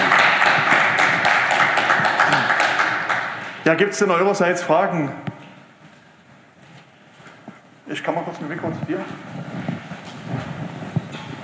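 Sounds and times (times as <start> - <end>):
audience applause: 0.0 - 3.6
speech: 3.7 - 5.3, 7.9 - 9.8.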